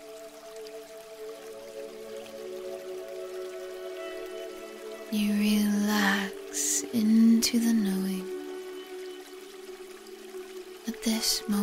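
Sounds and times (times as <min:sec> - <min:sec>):
waterfall: 0:00.0 - 0:11.6
speech: 0:05.1 - 0:08.3, 0:11.0 - 0:11.6.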